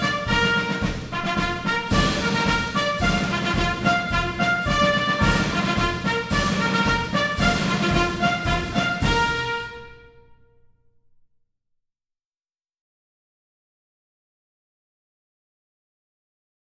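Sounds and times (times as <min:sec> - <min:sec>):
bugle call: 0:00.0 - 0:10.4
military march music: 0:00.0 - 0:10.5.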